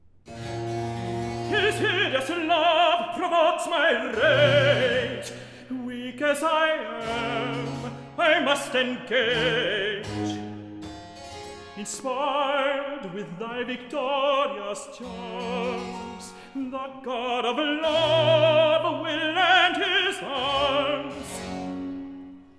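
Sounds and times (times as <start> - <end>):
recitative singing: 0.9 - 10.6, 11.8 - 21.9.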